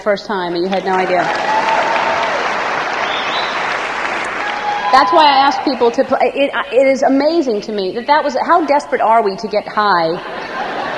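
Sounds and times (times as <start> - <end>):
speech: 0.0 - 1.8, 4.9 - 10.4
audience round of applause: 0.7 - 6.1
laughter: 10.1 - 10.9.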